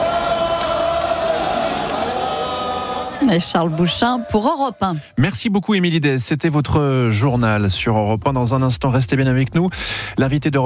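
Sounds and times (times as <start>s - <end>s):
crowd applause at a festive gathering: 0.0s - 5.0s
speech: 3.3s - 10.6s.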